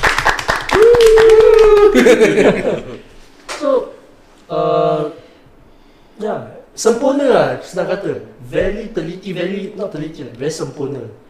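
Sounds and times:
hand clapping: 0.0 - 2.4
drawn-out vocal cheer: 0.7 - 2.3
laughter: 1.4 - 3.1
speech: 1.9 - 3.0, 6.8 - 11.2.

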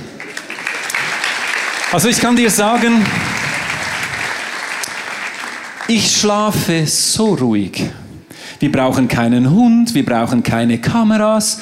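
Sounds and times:
audience applause: 0.0 - 6.6
speech: 1.9 - 3.4, 5.9 - 8.0, 8.6 - 11.6.

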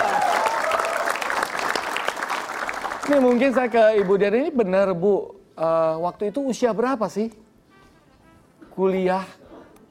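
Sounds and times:
audience applause: 0.0 - 4.2
speech: 3.1 - 7.4, 8.8 - 9.4.

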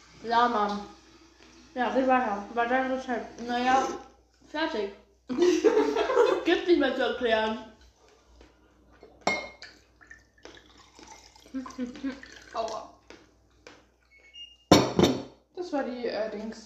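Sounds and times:
speech: 0.2 - 1.0, 1.8 - 7.7, 11.5 - 12.9, 15.6 - 16.6
laughter: 5.3 - 6.5
dishes clattering while loading a dishwasher: 9.0 - 9.9, 14.7 - 15.4.

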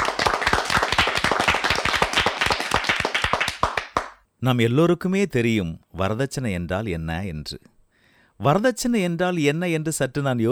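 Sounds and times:
audience clapping in welcome: 0.0 - 4.2
speech: 4.4 - 7.7, 8.4 - 10.4.

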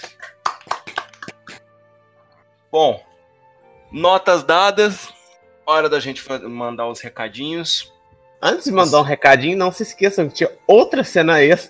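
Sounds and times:
hands clapping: 0.0 - 1.6
speech: 2.7 - 3.1, 3.9 - 5.1, 5.7 - 11.6.

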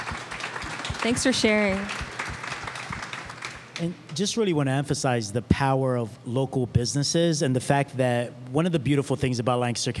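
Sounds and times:
audience clapping: 0.0 - 4.6
speech: 1.0 - 2.0, 3.8 - 9.9.

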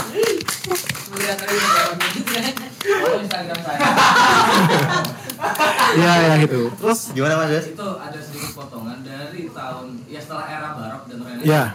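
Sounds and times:
audience clapping: 0.0 - 6.1
speech: 0.7 - 11.7
crowd laughing and chuckling: 1.6 - 6.6.

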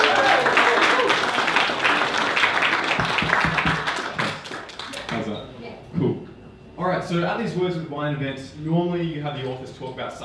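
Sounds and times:
audience clapping: 0.0 - 5.2
speech: 7.1 - 10.2.

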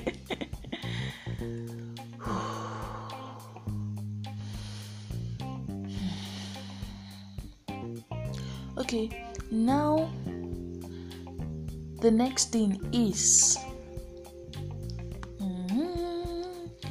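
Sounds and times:
speech: 0.0 - 0.4, 8.9 - 10.2, 12.0 - 13.7
low music bed: 0.0 - 16.8
deep breathing: 0.8 - 7.7, 8.3 - 8.8, 10.8 - 11.6.

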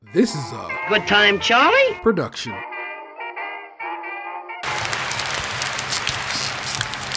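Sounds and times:
speech: 0.1 - 2.7
applause: 4.6 - 7.1.

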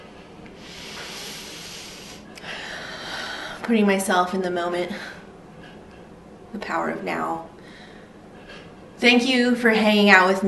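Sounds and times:
deep breath: 0.6 - 3.6, 7.6 - 8.7
speech: 3.7 - 5.2, 6.7 - 7.5, 9.0 - 10.4.

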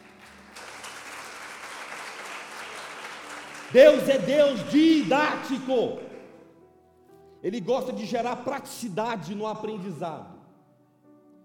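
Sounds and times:
audience applause: 0.0 - 6.3
speech: 3.7 - 6.0, 7.4 - 10.4.

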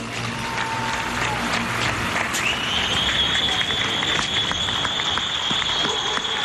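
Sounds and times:
applause from balconies across a neighbourhood: 0.0 - 6.4
faint cheering: 0.0 - 6.4
steady whistle-like tone: 2.4 - 6.4.

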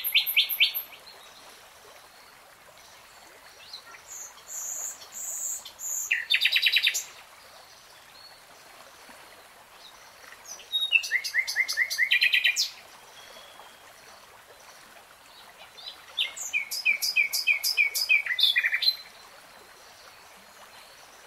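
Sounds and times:
nightingale song: 0.0 - 1.1, 3.6 - 7.2, 10.5 - 13.9, 15.8 - 19.2.

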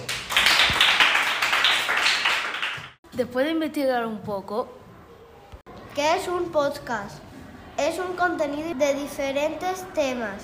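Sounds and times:
audience applause: 0.0 - 3.0
speech: 3.2 - 4.8, 6.0 - 10.4.

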